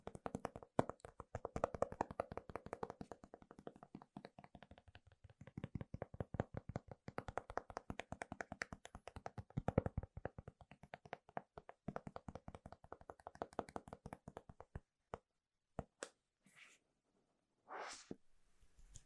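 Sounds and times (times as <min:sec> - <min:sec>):
fingers tapping on Apple gadgets, keyboards and product boxes: 0:00.0 - 0:15.2
brushing swishes: 0:17.7 - 0:18.2.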